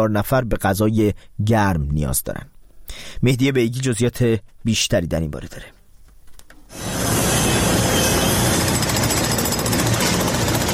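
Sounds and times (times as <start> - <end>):
speech: 0.0 - 5.8
rescue workers' heavy machinery and tools: 6.7 - 10.7.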